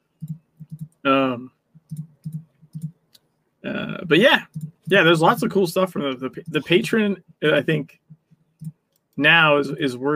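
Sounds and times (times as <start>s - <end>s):
computer mouse clicks: 0.2s - 1.0s, 1.9s - 3.3s, 4.5s - 5.0s
speech: 1.0s - 1.6s, 3.6s - 8.0s, 9.2s - 10.1s.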